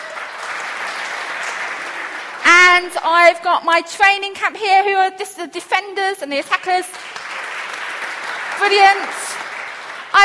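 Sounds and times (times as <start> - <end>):
audience applause for a football keepy-uppy performer: 0.0 - 2.5, 6.9 - 10.2
speech: 2.8 - 7.1, 8.6 - 9.2.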